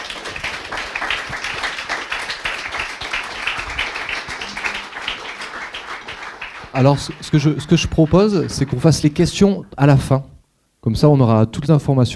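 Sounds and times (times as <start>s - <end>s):
audience applause: 0.0s - 9.4s
speech: 6.8s - 10.3s, 10.9s - 12.1s.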